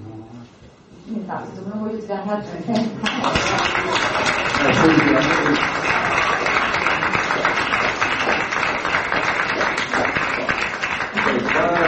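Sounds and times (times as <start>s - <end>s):
speech: 1.1s - 6.4s
audience applause: 3.0s - 11.8s.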